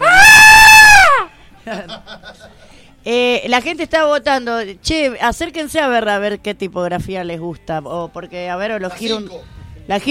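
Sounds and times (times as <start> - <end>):
person screaming: 0.0 - 1.3
laughter: 1.3 - 3.0
speech: 1.8 - 10.0.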